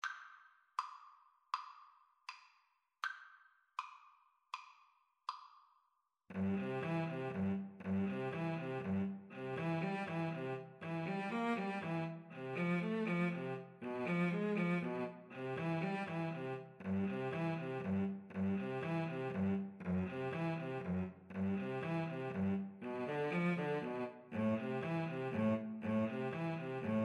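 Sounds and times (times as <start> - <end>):
cello: 6.3 - 27.0
violin: 6.3 - 27.0.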